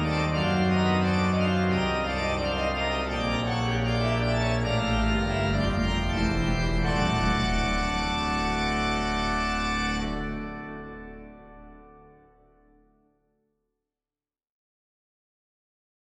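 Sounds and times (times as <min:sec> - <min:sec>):
Schantz pipe organ: 0:00.0 - 0:12.9.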